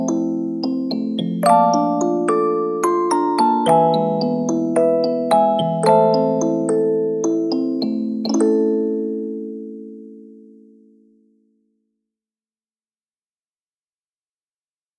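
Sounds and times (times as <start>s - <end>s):
music box: 0.0s - 10.0s.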